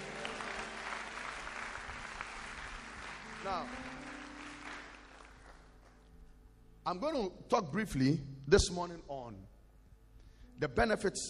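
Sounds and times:
audience clapping: 0.0s - 6.1s
speech: 3.4s - 4.1s, 6.9s - 9.5s, 10.6s - 11.2s.

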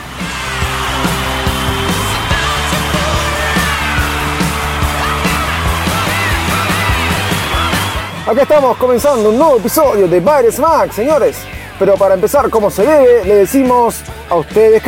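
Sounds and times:
applause: 0.0s - 8.2s
cheering: 0.0s - 12.1s
speech: 8.3s - 14.8s.

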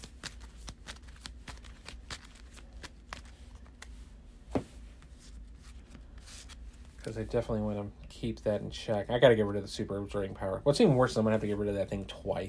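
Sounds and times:
deck of cards being shuffled: 0.0s - 7.4s
speech: 7.0s - 12.4s.

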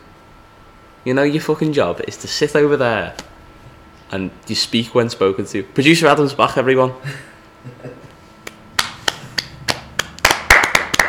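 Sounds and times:
speech: 1.0s - 3.3s, 4.1s - 7.3s
hand clapping: 8.4s - 11.0s.

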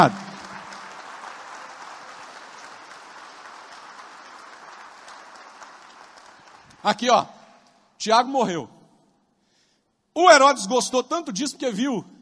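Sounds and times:
speech: 0.0s - 0.3s, 6.8s - 7.4s, 8.0s - 8.8s, 10.2s - 12.2s
audience applause: 0.0s - 7.2s.

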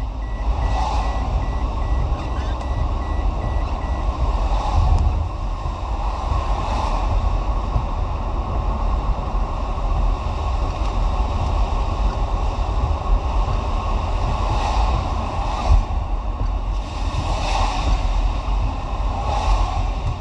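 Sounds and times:
car seatbelt warning beeping: 0.0s - 4.2s
car engine and road rumble: 0.0s - 20.1s.

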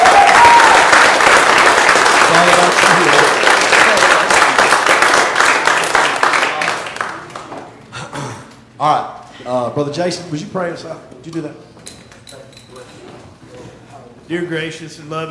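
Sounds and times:
audience clapping hands in praise: 0.0s - 7.8s
speech: 8.8s - 11.7s, 14.3s - 15.3s.

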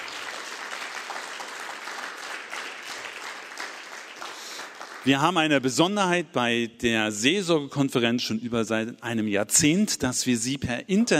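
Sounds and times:
crowd applause: 0.0s - 5.2s
speech: 5.0s - 11.1s.

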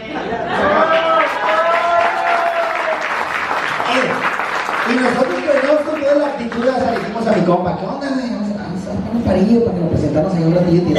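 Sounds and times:
speech: 0.3s - 0.6s, 7.3s - 10.9s
cheering voices: 0.4s - 4.1s
audience applause: 0.6s - 7.5s.

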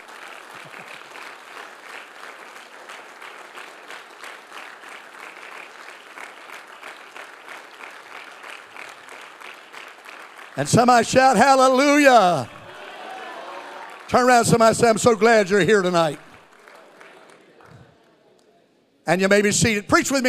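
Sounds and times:
audience clapping hands: 0.0s - 18.5s
speech: 10.6s - 12.6s, 14.1s - 16.2s, 19.1s - 20.2s.

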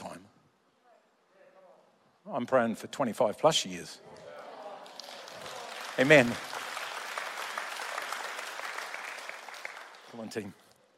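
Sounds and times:
speech: 2.3s - 4.2s, 6.0s - 6.5s, 10.2s - 10.6s
audience clapping: 4.3s - 10.8s.

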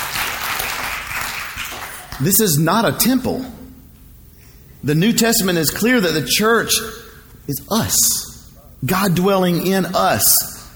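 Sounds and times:
audience clapping: 0.0s - 2.2s
speech: 2.2s - 3.6s, 4.8s - 10.5s.

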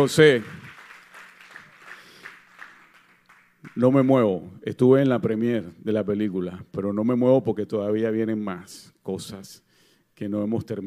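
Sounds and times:
speech: 0.0s - 0.6s, 3.8s - 9.6s, 10.2s - 10.8s
audience applause: 0.0s - 4.2s.

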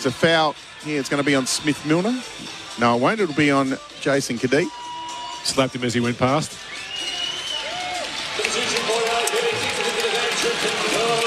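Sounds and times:
speech: 0.0s - 4.8s, 5.4s - 6.7s
crowd applause for player entering game: 6.8s - 11.2s.

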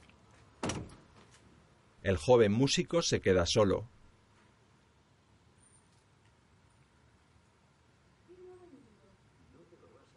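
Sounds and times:
door being closed: 0.6s - 1.2s
speech: 2.0s - 4.0s.

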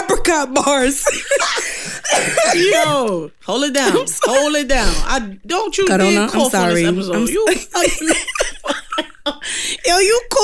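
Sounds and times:
harsh coughing from allergies with pollen irritating the throat: 0.0s - 3.1s, 3.8s - 5.2s, 7.5s - 9.8s
speech: 0.1s - 8.8s, 9.4s - 10.4s
person laughing hard: 0.8s - 3.0s, 6.6s - 9.9s.

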